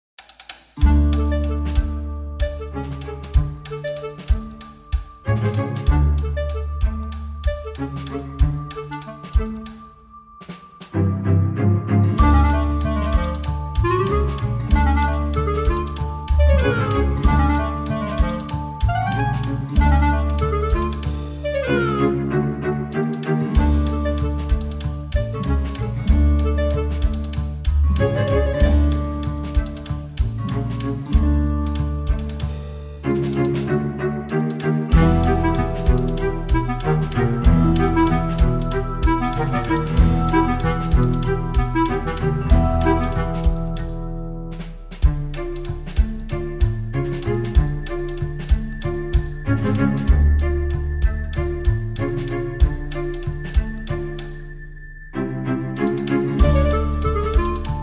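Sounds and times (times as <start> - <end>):
tango music: 0.8 - 9.8, 11.0 - 54.6, 55.2 - 57.8.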